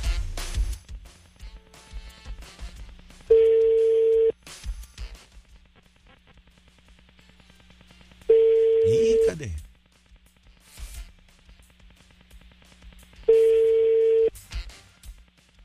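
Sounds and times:
telephone ringback tones on a call to a radio station prize line: 3.3 - 4.3, 8.3 - 9.4, 13.3 - 14.3
person talking: 8.8 - 9.6.

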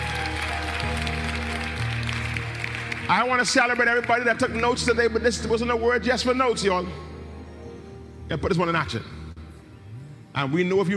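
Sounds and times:
audience clapping: 0.0 - 4.6
organ or keyboard chords: 0.0 - 10.9
speech: 3.1 - 7.1, 8.3 - 9.2, 10.4 - 10.9.

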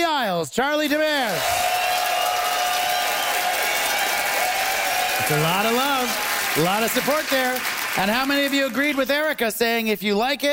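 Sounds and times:
speech: 0.4 - 1.7, 5.2 - 10.5
cheering: 1.2 - 9.3
audience applause: 1.3 - 9.4.

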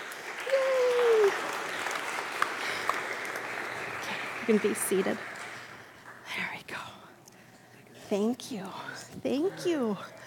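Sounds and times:
audience applause: 0.0 - 6.2
speech: 4.5 - 5.3, 8.1 - 10.2.

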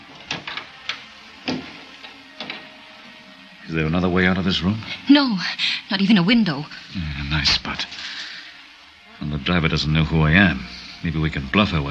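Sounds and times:
door being shut: 0.0 - 2.8
speech: 3.7 - 8.3, 9.2 - 11.8.

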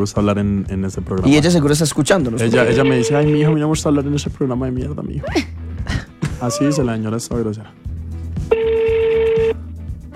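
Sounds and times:
speech: 0.0 - 7.9
telephone ringback tone on an unanswered call: 2.5 - 3.6, 8.5 - 9.6.

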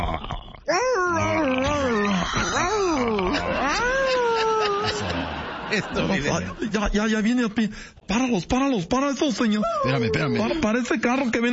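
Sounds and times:
person imitating a hurt dog's whimper: 0.0 - 5.2, 9.6 - 10.6
laughter: 1.9 - 6.9
speech: 5.7 - 11.5.

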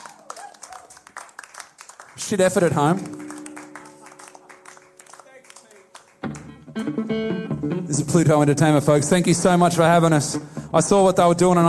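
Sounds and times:
small audience clapping: 0.0 - 7.1
speech: 2.2 - 3.2, 7.1 - 11.6.

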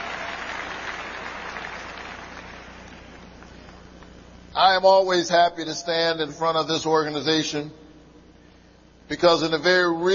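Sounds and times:
large crowd applause: 0.0 - 3.4
speech: 4.6 - 7.8, 9.1 - 10.1.

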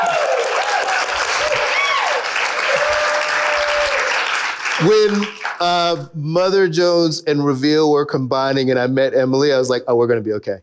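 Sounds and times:
people cheering and whooping: 0.0 - 5.2
crowd applauding: 0.0 - 5.9
speech: 4.8 - 10.6.

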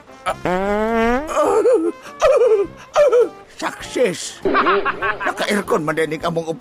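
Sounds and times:
speech: 0.2 - 6.5
fart: 0.3 - 1.4
laughter: 1.4 - 3.4, 4.5 - 5.7.

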